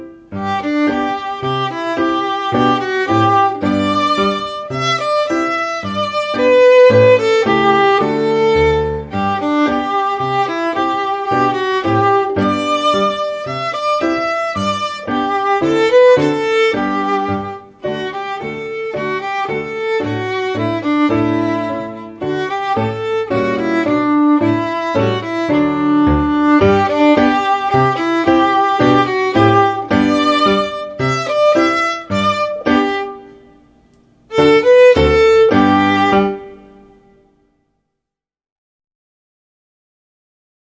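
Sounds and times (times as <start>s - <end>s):
violin bowing: 0.3s - 33.7s, 34.3s - 37.1s.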